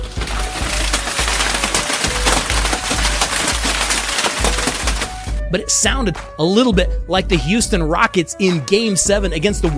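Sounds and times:
hailstorm: 0:00.0 - 0:05.4
speech: 0:05.5 - 0:09.7.

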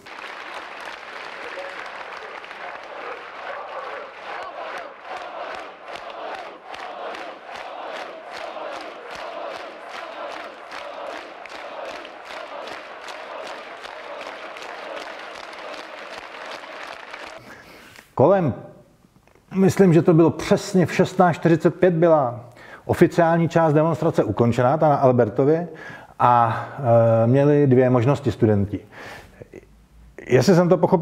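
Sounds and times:
demonstration crowd chanting and shouting: 0:00.0 - 0:17.4
speech: 0:18.2 - 0:18.6, 0:19.6 - 0:28.9, 0:30.3 - 0:31.0.

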